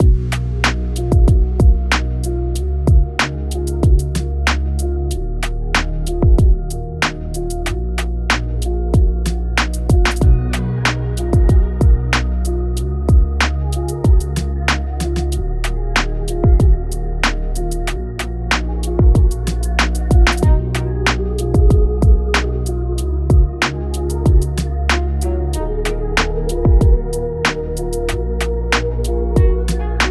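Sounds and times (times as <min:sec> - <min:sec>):
E flat minor music at 94 bpm: 0:00.0 - 0:30.0.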